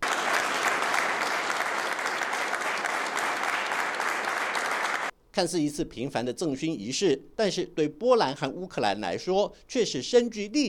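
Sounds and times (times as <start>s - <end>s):
warm applause from ceremony guests: 0.0s - 5.1s
speech: 5.4s - 10.6s.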